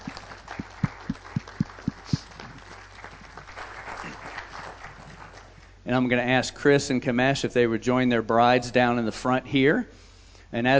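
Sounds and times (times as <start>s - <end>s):
people clapping: 0.0s - 5.8s
speech: 5.9s - 10.7s.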